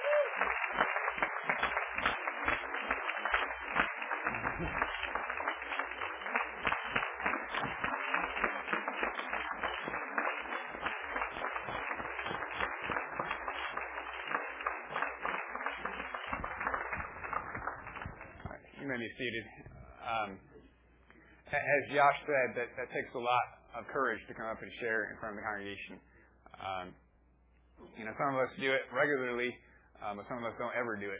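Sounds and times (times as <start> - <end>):
audience applauding: 0.0 - 19.1
speech: 4.6 - 4.8, 19.2 - 20.5, 21.5 - 26.1, 26.7 - 27.0, 28.0 - 31.1.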